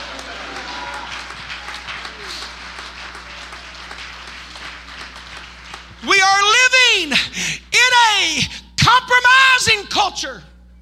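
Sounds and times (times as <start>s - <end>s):
audience shouting: 0.0s - 4.0s
audience clapping: 0.0s - 7.2s
speech: 9.0s - 10.5s.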